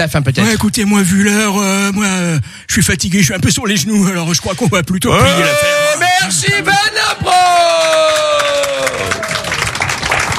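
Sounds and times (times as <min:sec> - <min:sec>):
speech: 0:00.0 - 0:09.0
audience applause: 0:06.7 - 0:10.3.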